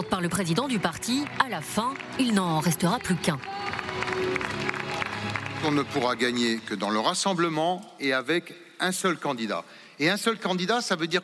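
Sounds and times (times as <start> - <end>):
speech: 0.0 - 4.8, 5.6 - 11.2
crowd applauding candidates: 0.0 - 7.3.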